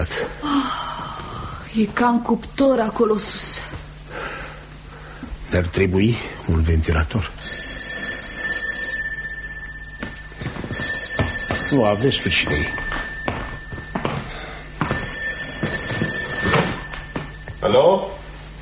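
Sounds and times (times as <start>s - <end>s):
speech: 1.8s - 3.8s, 5.5s - 7.4s, 11.7s - 12.8s
telephone ringing: 7.4s - 18.2s.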